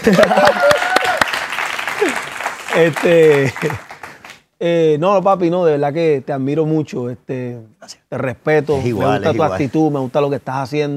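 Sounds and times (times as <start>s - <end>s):
speech: 0.0s - 0.8s, 2.8s - 3.9s, 4.6s - 10.9s
laughter: 0.0s - 0.9s
applause: 0.0s - 4.4s.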